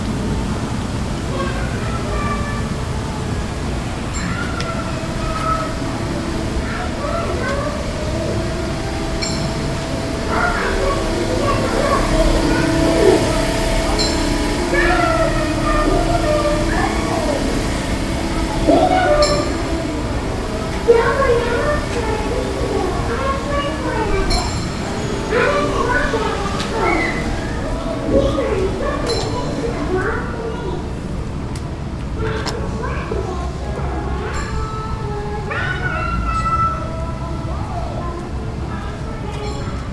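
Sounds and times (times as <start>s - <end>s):
theme park crowd murmur: 0.0s - 39.9s
people shouting: 4.2s - 29.1s
low rumble: 4.9s - 32.0s.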